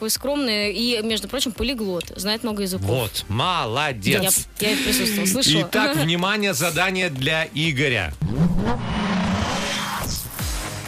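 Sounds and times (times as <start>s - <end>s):
speech: 0.0s - 9.0s
race car engine as the car pulls out onto a race track: 8.2s - 10.2s.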